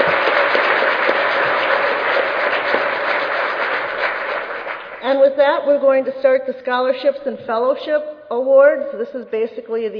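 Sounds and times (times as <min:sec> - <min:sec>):
audience applause: 0:00.0 - 0:05.1
speech: 0:05.1 - 0:09.9.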